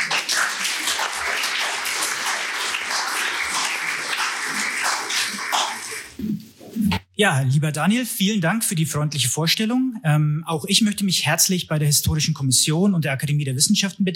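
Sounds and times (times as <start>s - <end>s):
audience applause: 0.0s - 6.2s
speech: 7.2s - 14.1s.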